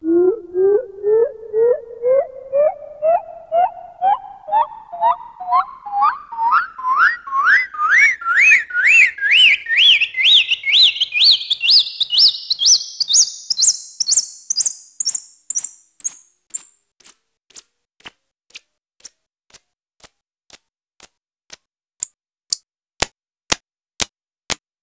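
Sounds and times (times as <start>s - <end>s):
bird tweet scale: 0.0s - 19.2s.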